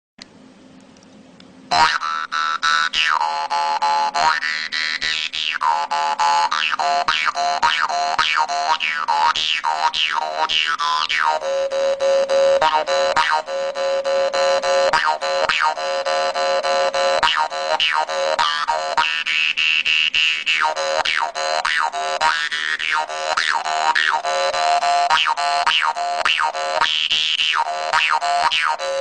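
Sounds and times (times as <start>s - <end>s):
jaw harp boogie: 1.7s - 29.0s.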